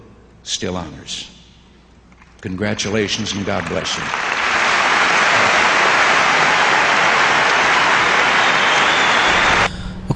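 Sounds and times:
speech: 0.4s - 1.4s, 2.4s - 4.3s
audience applause after commencement speech: 2.8s - 9.7s.

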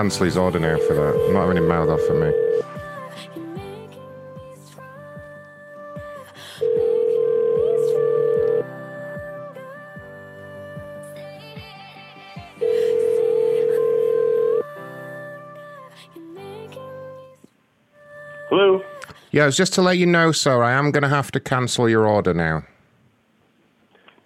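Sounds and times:
speech: 0.0s - 2.7s, 19.4s - 22.7s
telephone ringing tone while calling someone: 0.0s - 2.8s, 6.6s - 8.7s, 12.6s - 14.7s
music: 0.0s - 19.7s.

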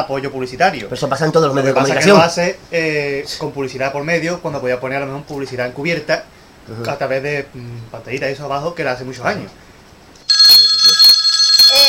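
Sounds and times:
speech: 0.0s - 9.7s
telephone ringing with a listener's call to a radio show: 10.3s - 11.8s.

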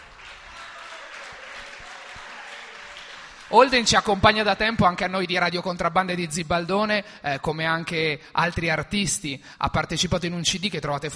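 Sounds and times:
audience applause: 0.0s - 4.2s
speech: 3.5s - 11.1s.

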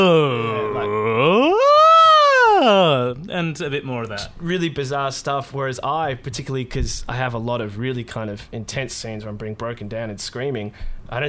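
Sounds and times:
speech: 0.0s - 0.4s, 3.4s - 11.2s
wild wordless vocal warm-up hitting all ranges: 0.0s - 3.3s.

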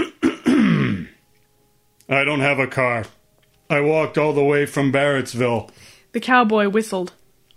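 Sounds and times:
man clearing his throat: 0.0s - 1.2s
speech: 2.1s - 7.2s.

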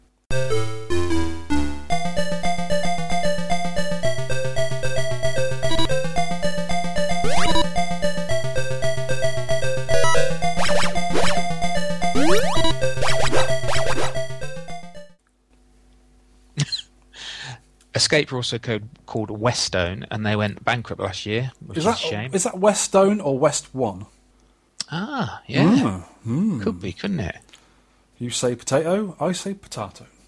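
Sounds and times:
synthesized music from the 1986 Sega video game: 0.3s - 15.2s
speech: 18.1s - 24.2s, 24.9s - 27.5s, 28.2s - 30.2s.

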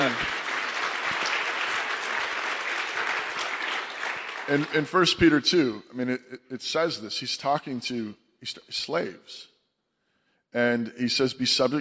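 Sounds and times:
audience clapping: 0.0s - 5.3s
speech: 4.5s - 9.5s, 10.5s - 11.7s.

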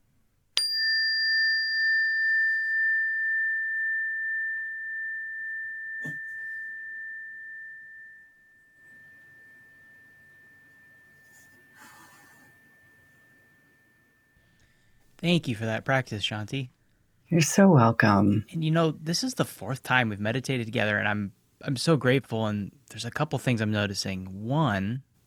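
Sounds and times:
meditation bell ringing: 0.6s - 15.0s
soft breath: 11.1s - 13.4s, 14.3s - 15.2s
speech: 15.2s - 25.1s.

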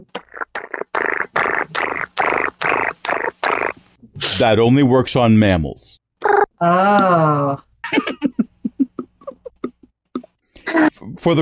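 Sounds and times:
voice imitating a cat's purr: 0.0s - 3.8s, 6.2s - 7.1s
speech: 4.4s - 6.0s, 6.6s - 8.3s, 10.8s - 11.3s.

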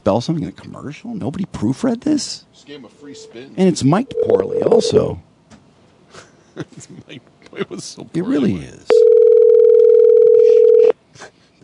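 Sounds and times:
speech: 0.0s - 5.3s, 6.1s - 9.1s
telephone dial tone: 4.1s - 5.0s, 8.9s - 10.9s.

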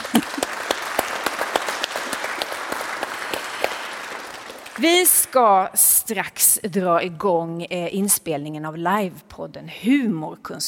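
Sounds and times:
audience applauding: 0.0s - 5.5s
speech: 0.2s - 0.4s, 4.8s - 10.6s.

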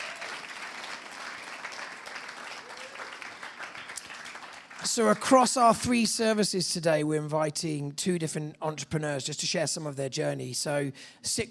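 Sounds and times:
audience applause: 0.0s - 5.4s
speech: 4.9s - 11.5s.

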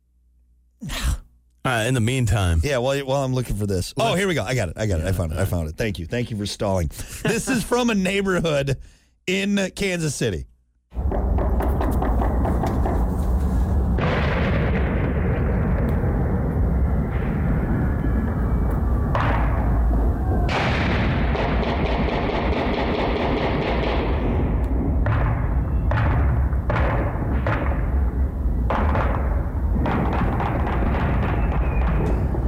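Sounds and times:
speech: 1.7s - 10.5s
gunshots in a Kansas City neighborhood celebration: 11.0s - 18.2s, 19.1s - 32.4s
explosions in a Kansas City neighborhood celebration: 11.0s - 32.4s.

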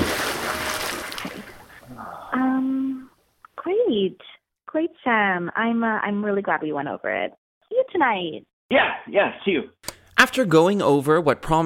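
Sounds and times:
splash of leaping into water: 0.0s - 1.8s
speech: 4.0s - 11.6s.

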